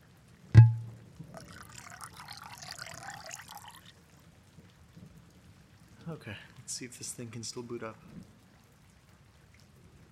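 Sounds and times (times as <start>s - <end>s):
bottle or glass being set down: 0.6s - 1.0s
wine pouring into a glass: 0.6s - 3.9s
speech: 6.1s - 8.3s.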